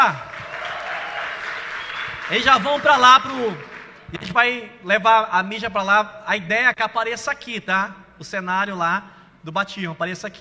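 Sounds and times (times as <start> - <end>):
speech: 0.0 - 0.3, 2.3 - 10.4
audience applause: 0.0 - 4.0.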